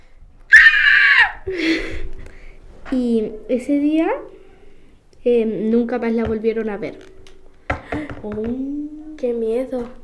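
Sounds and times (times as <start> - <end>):
loud shrill scream sound effect: 0.5 - 1.5
lower wavering wail: 0.5 - 2.1
speech: 2.9 - 4.3, 5.2 - 7.1, 8.2 - 10.0.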